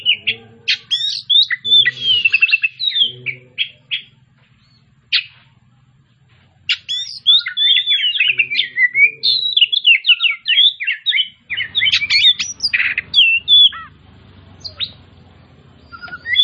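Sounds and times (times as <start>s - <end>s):
Oriental magpie-robin song: 0.0s - 16.4s.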